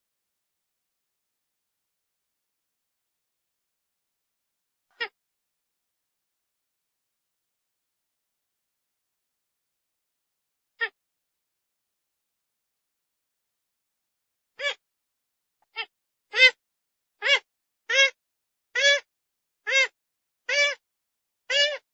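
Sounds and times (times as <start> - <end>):
grey-headed swamphen calls: 15.8 - 16.6, 17.2 - 18.2, 18.8 - 19.1, 19.7 - 19.9, 20.5 - 20.8, 21.5 - 21.8.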